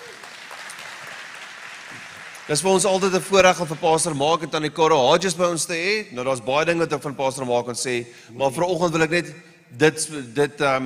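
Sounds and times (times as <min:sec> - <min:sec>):
audience applause: 0:00.0 - 0:04.2
speech: 0:02.5 - 0:10.8.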